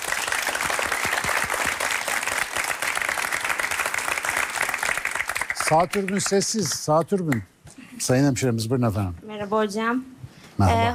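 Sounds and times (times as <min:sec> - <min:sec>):
crowd applause: 0:00.0 - 0:06.6
speech: 0:05.7 - 0:10.9.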